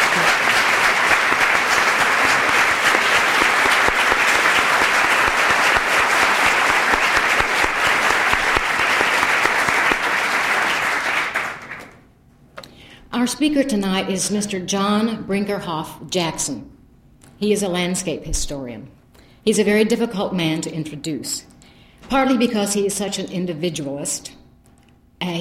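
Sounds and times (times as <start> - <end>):
crowd applauding: 0.0 - 12.0
speech: 13.3 - 16.8, 17.4 - 24.4, 25.2 - 25.3.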